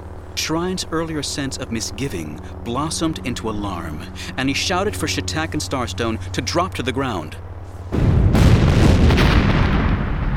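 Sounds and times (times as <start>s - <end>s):
speech: 0.5s - 7.4s
crackling burst: 7.8s - 10.3s
series of concussive explosions: 7.9s - 10.3s.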